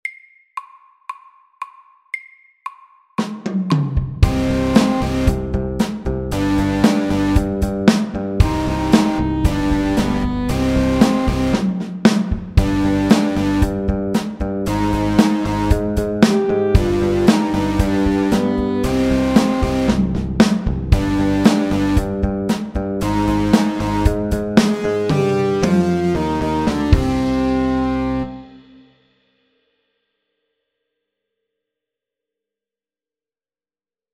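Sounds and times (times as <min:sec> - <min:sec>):
electric rock music: 0:04.2 - 0:11.8, 0:12.4 - 0:28.5.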